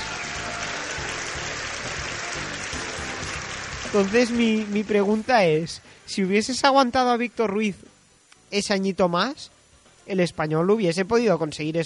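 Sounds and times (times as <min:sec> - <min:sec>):
crowd applause sound effect: 0:00.0 - 0:05.6
speech: 0:03.9 - 0:07.9, 0:08.5 - 0:11.8.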